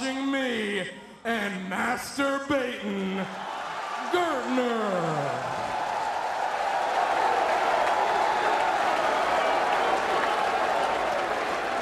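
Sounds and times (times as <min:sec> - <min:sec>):
speech: 0:00.9 - 0:03.5, 0:04.1 - 0:05.6
audience applause: 0:03.3 - 0:11.8.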